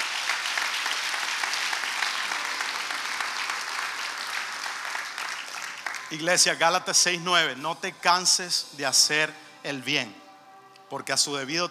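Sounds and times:
audience applauding: 0.0s - 6.8s
speech: 6.1s - 10.2s, 10.9s - 11.6s.

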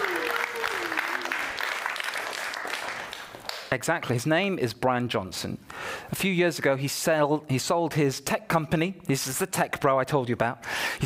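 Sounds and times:
audience applause: 0.0s - 3.7s
speech: 3.7s - 11.0s.

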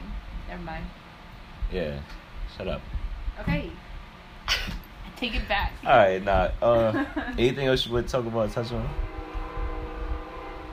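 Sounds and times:
droning hum: 0.0s - 10.7s
speech: 0.5s - 3.9s, 4.5s - 9.1s
laughter: 6.6s - 7.6s
passing train rumbling: 7.4s - 10.7s.

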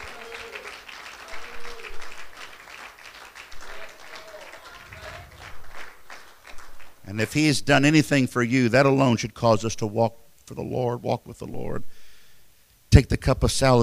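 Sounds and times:
faint voices and cheers: 0.0s - 2.5s, 3.5s - 6.0s
crowd clapping: 0.0s - 7.4s
speech: 7.1s - 12.0s, 12.9s - 13.8s.

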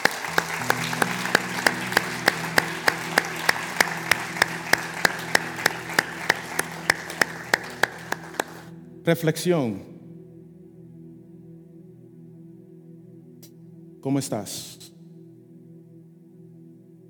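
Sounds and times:
audience rhythmic clapping: 0.0s - 8.7s
low keyboard chords: 0.0s - 17.0s
speech: 9.1s - 9.9s, 14.0s - 14.8s.

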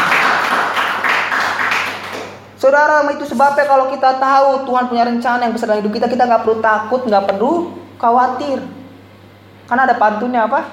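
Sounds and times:
audience applause: 0.0s - 2.4s
speech: 2.6s - 8.8s, 9.7s - 10.7s.

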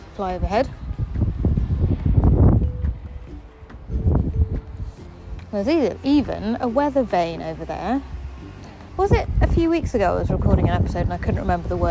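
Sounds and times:
wind blowing outdoors: 0.0s - 11.8s
speech: 0.2s - 1.1s, 5.5s - 8.2s, 9.0s - 11.8s.

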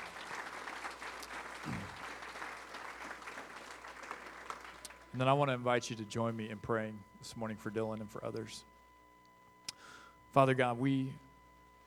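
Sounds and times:
audience applause: 0.0s - 5.0s
speech: 5.2s - 8.7s, 10.3s - 11.2s.

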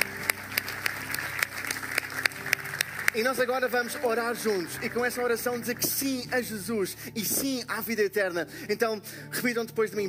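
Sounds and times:
audience applause: 0.0s - 5.8s
speech: 3.2s - 10.0s.

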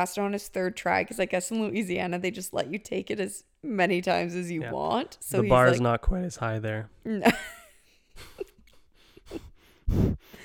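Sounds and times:
speech: 0.0s - 7.6s, 9.3s - 10.2s
heavy breathing into the microphone: 9.0s - 10.4s.

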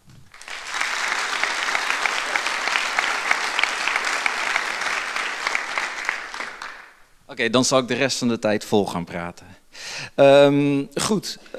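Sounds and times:
audience applause: 0.2s - 7.0s
speech: 7.4s - 11.5s.

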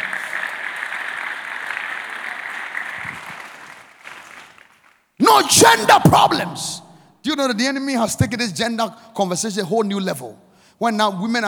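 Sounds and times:
audience applause: 0.0s - 5.1s
speech: 5.4s - 11.4s.

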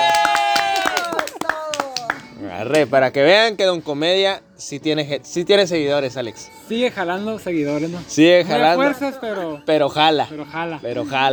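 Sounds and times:
audience applause: 0.0s - 3.0s
speech: 2.6s - 11.3s.

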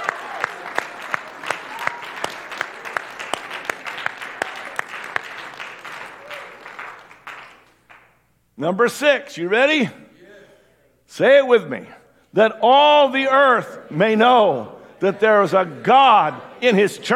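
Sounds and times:
audience clapping hands: 0.0s - 8.3s
speech: 8.6s - 10.0s, 11.2s - 17.1s.

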